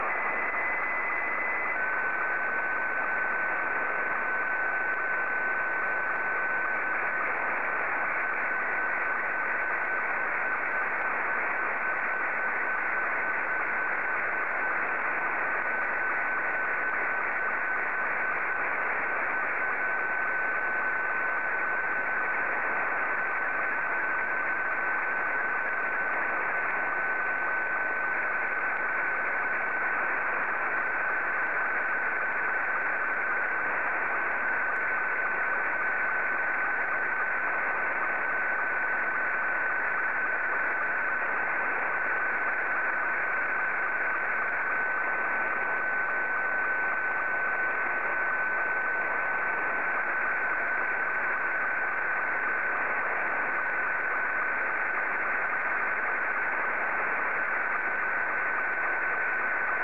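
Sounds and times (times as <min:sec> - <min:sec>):
Scottie 2 slow-scan television signal: 0:00.0 - 0:59.8.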